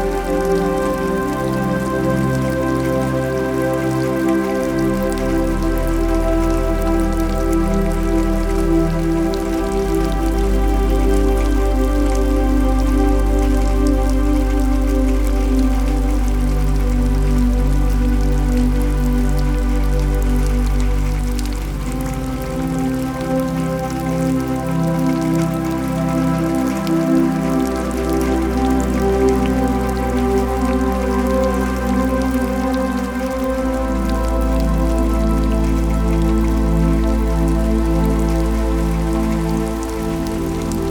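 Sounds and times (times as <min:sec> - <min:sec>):
rain: 0:00.0 - 0:40.8.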